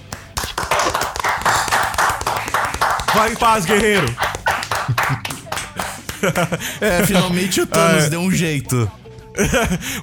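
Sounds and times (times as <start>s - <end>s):
hands clapping: 0.0s - 6.6s
laughter: 3.1s - 8.0s, 9.4s - 10.0s
speech: 3.2s - 4.2s, 6.2s - 10.0s.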